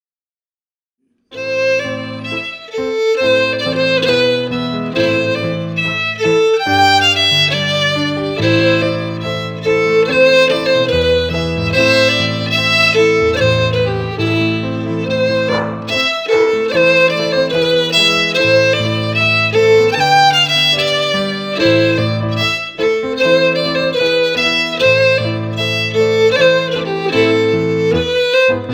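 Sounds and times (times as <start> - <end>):
fiddle: 1.3 - 28.7
piano: 1.3 - 28.7.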